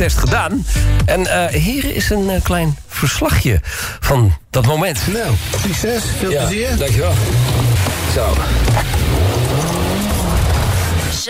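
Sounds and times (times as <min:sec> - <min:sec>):
speech: 0:00.0 - 0:09.7
car accelerating hard from a standstill: 0:05.2 - 0:11.2
tire noise: 0:05.2 - 0:11.2.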